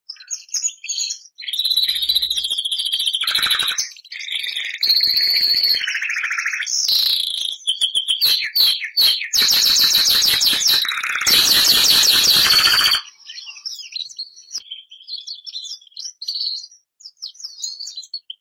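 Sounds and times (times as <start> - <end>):
Bernois canary singing: 1.5 - 13.6.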